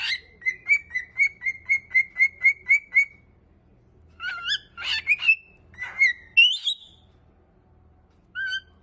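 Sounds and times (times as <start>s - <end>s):
cockatiel whistles and squawks: 0.0s - 3.3s, 4.2s - 7.0s, 8.3s - 8.8s.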